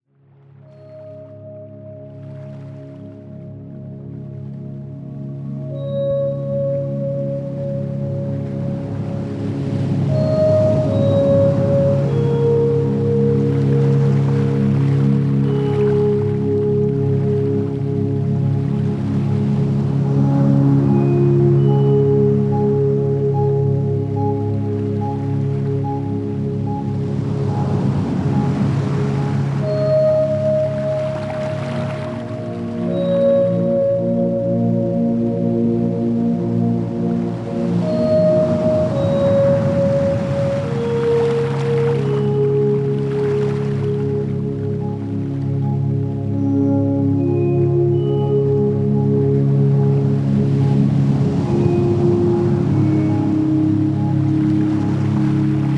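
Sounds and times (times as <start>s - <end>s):
ocean meditation music: 0.1s - 55.7s.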